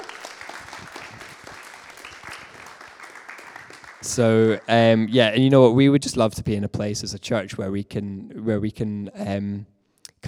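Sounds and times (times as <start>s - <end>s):
audience clapping: 0.0s - 5.4s
speech: 4.0s - 10.2s.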